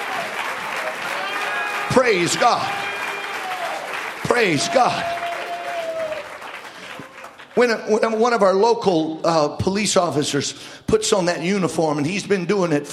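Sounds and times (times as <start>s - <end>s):
audience clapping hands: 0.0s - 8.2s
speech: 2.0s - 2.9s, 4.4s - 5.2s, 7.6s - 12.9s
man exclaiming: 4.3s - 6.0s.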